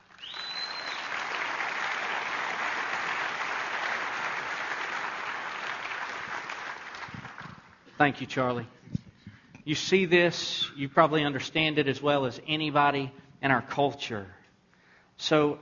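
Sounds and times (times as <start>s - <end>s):
audience applause welcoming a judge onto the stage: 0.0s - 7.8s
short whistle: 0.1s - 1.2s
speech: 8.0s - 8.8s, 9.6s - 14.4s, 15.2s - 15.6s.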